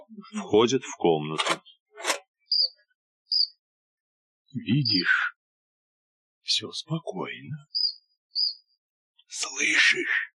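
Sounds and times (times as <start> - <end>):
speech: 0.3 - 1.7, 4.5 - 5.3, 6.5 - 7.8, 9.3 - 10.2
cricket chirping: 3.3 - 3.5.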